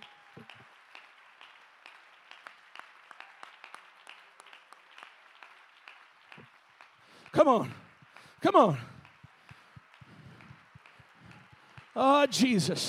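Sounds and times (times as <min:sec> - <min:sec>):
audience clapping hands in praise: 0:00.0 - 0:12.8
speech: 0:07.3 - 0:07.8, 0:08.4 - 0:08.9, 0:12.0 - 0:12.8.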